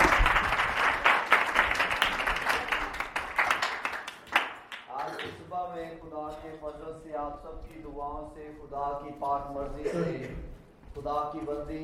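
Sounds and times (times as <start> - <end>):
church congregation clapping during a worship service: 0.0 - 5.5
speech: 7.0 - 11.8.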